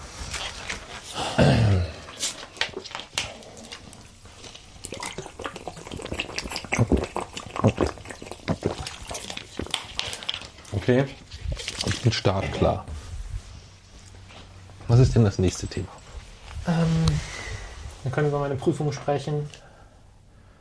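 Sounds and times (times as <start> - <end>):
someone sipping water: 0.2 - 12.0
speech: 10.9 - 11.2, 12.0 - 12.9, 15.0 - 16.0, 16.7 - 17.3, 18.0 - 19.6.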